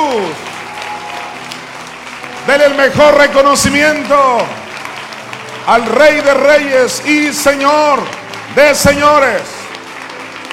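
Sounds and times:
audience applause: 0.0 - 10.5
speech: 2.5 - 4.6, 5.6 - 9.6.

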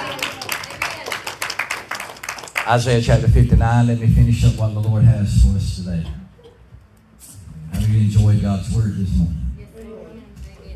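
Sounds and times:
crowd clapping: 0.0 - 3.5
speech: 2.7 - 6.2, 8.3 - 9.4.

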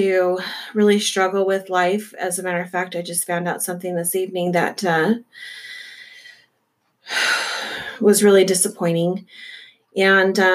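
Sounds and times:
speech: 0.0 - 5.7, 7.1 - 10.5
deep breath: 5.4 - 6.5, 9.3 - 9.9.

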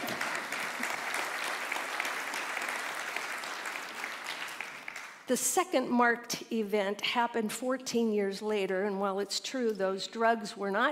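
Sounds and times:
audience clapping: 0.0 - 5.3
speech: 5.3 - 10.9.

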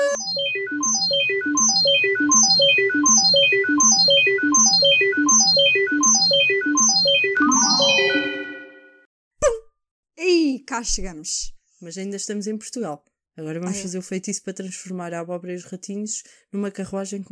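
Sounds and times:
time machine sound effect: 0.2 - 9.0
speech: 10.7 - 17.3.

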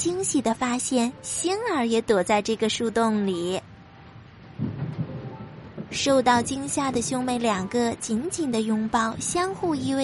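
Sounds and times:
speech: 0.0 - 3.7, 5.9 - 10.0
rumbling thunder: 4.4 - 7.7.

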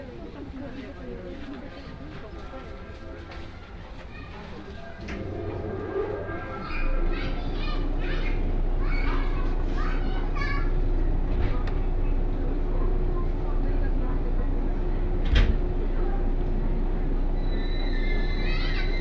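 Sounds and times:
low rumble of a 117 series train on the Kosei Line: 0.0 - 18.9
voices chattering aboard a 117 series local train: 0.0 - 18.9
high whine: 5.0 - 9.6.

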